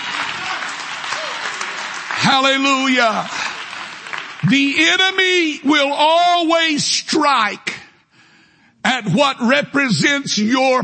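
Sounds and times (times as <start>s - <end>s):
audience clapping hands in praise: 0.0s - 5.5s
speech: 2.3s - 3.5s, 4.4s - 7.8s, 8.8s - 10.8s.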